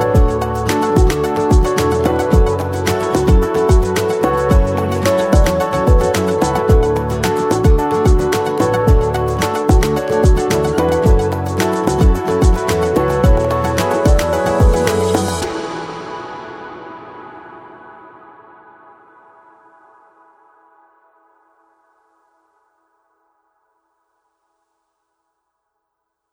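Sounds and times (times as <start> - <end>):
light summer background music: 0.0 - 18.8.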